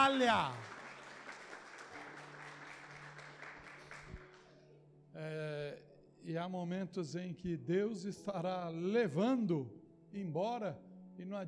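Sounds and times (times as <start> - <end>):
audience applause: 0.0 - 4.5
speech: 0.1 - 0.7, 5.2 - 11.4.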